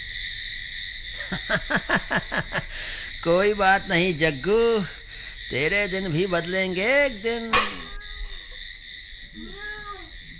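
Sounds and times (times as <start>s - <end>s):
night insects chorus: 0.0s - 10.3s
laughter: 1.2s - 2.8s
speech: 1.3s - 2.0s, 3.2s - 7.8s
cat meowing: 7.5s - 8.6s, 9.3s - 10.2s.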